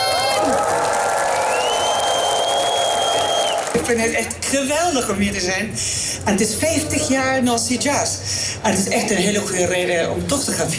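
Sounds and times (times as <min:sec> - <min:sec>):
audience applause for the queen: 0:00.0 - 0:03.9
speech: 0:03.8 - 0:10.7.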